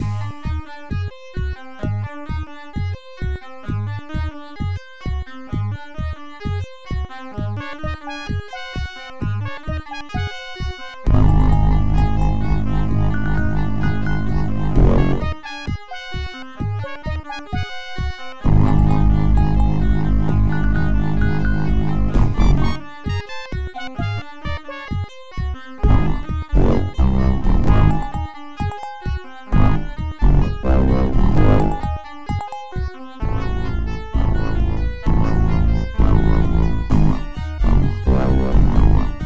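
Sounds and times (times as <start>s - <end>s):
music: 0.0s - 39.2s.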